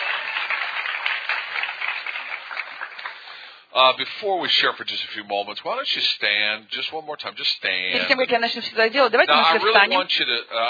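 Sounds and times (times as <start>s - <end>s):
crowd clapping: 0.0s - 3.5s
speech: 3.8s - 10.6s.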